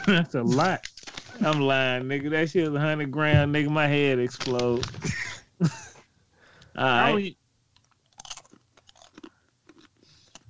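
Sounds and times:
speech: 0:00.1 - 0:05.8, 0:06.8 - 0:07.4
crunchy snack being chewed: 0:07.8 - 0:10.4.

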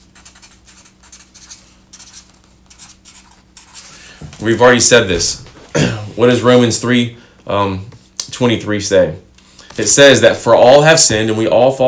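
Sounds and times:
hand drawing and writing with a pen on paper: 0:00.2 - 0:03.9
speech: 0:04.4 - 0:11.8.

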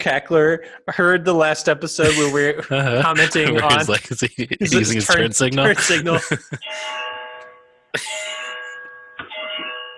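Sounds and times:
speech: 0:00.0 - 0:07.0, 0:07.9 - 0:08.2
laughter: 0:02.0 - 0:06.9, 0:08.0 - 0:08.3
clock chimes striking midnight: 0:05.8 - 0:09.9.

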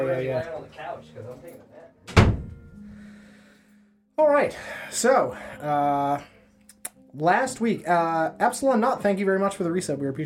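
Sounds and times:
speech: 0:00.0 - 0:02.4, 0:04.2 - 0:06.4, 0:07.1 - 0:10.2
heavy door thunk as the special door is opened: 0:02.1 - 0:02.6.

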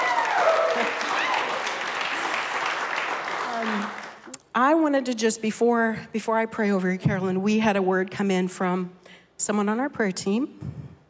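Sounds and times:
church audience applause welcoming a guest onstage: 0:00.0 - 0:04.3
speech: 0:04.6 - 0:10.8.

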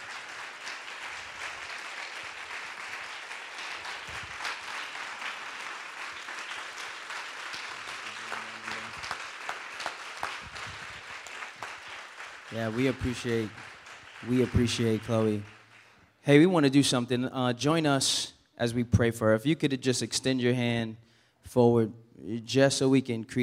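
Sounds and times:
audience clapping: 0:00.0 - 0:16.1
speech: 0:12.5 - 0:15.6, 0:16.2 - 0:23.4.

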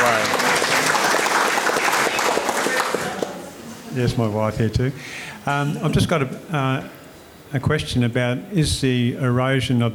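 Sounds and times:
audience applause: 0:00.0 - 0:03.4
speech: 0:04.0 - 0:09.9.

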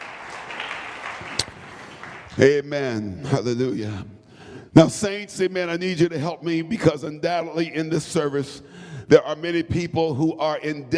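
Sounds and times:
audience clapping hands: 0:00.0 - 0:02.6
speech: 0:02.4 - 0:04.2, 0:04.8 - 0:10.9.

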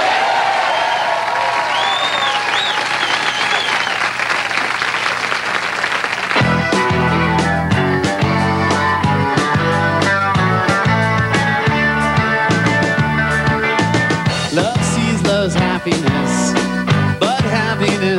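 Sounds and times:
people whooping: 0:00.0 - 0:05.8
audience applauding band's network television debut: 0:00.0 - 0:07.0
band music: 0:02.5 - 0:18.1.

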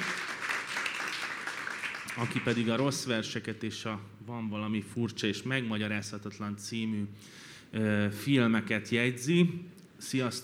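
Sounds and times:
audience applause: 0:00.0 - 0:02.8
speech: 0:02.2 - 0:10.4.

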